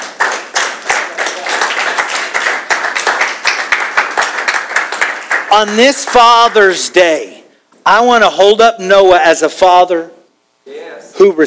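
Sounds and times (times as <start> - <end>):
audience clapping: 0.0 - 6.8
speech: 5.5 - 10.2, 11.2 - 11.4.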